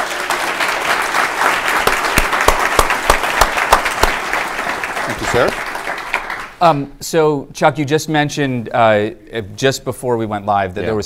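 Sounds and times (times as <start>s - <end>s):
audience applause at a City Club of Cleveland breakfast event: 0.0s - 6.6s
sharp individual claps: 0.0s - 6.6s
speech: 5.3s - 5.7s, 6.6s - 11.0s.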